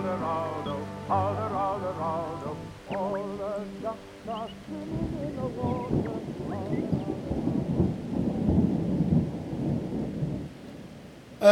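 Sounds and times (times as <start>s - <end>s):
rain: 0.0s - 11.4s
rolling thunder: 3.0s - 11.0s.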